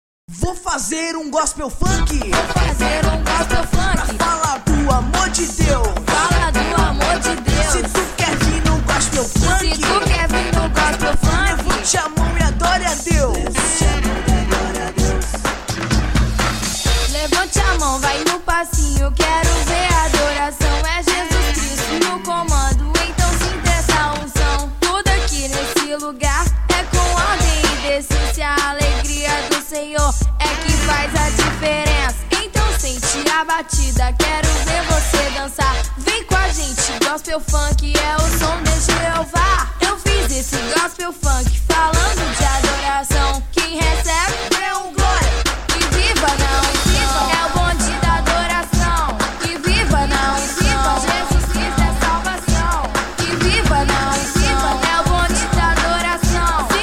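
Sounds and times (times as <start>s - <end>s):
gospel funk music: 0.3s - 56.8s.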